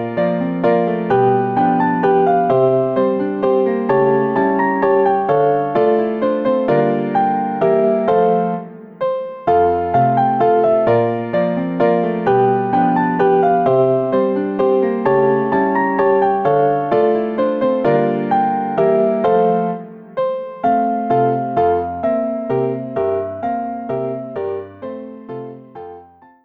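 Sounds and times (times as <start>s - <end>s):
Christmas piano solo and four-hands piano music: 0.0s - 26.4s.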